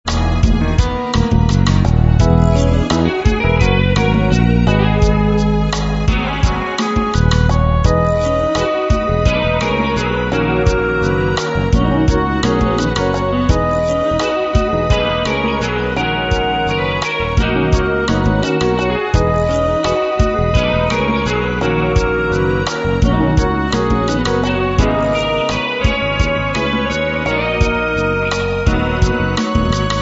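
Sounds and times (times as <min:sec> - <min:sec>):
latin music: 0:00.0 - 0:29.9.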